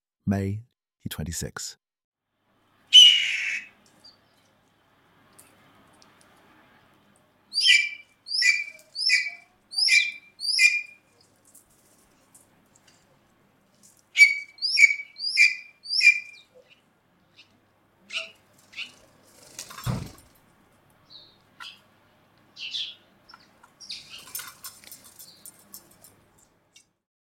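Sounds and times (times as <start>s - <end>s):
speech: 0.3s - 1.8s
blue jay calls at Presque Isle Provincial Park, Ontario: 2.9s - 4.2s, 7.5s - 11.1s, 14.2s - 19.0s, 22.6s - 24.4s.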